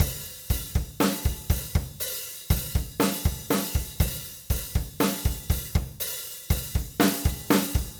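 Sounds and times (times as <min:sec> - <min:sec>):
drum: 0:00.0 - 0:07.9.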